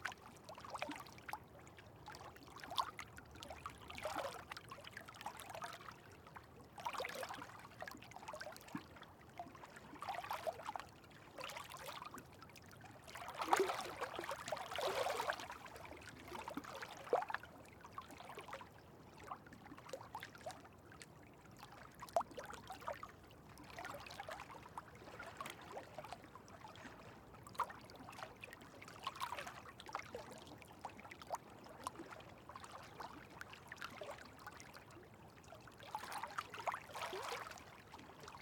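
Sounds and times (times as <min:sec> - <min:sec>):
small quiet waves rippling on a lake in the Scottish Highlands: 0:00.0 - 0:38.3.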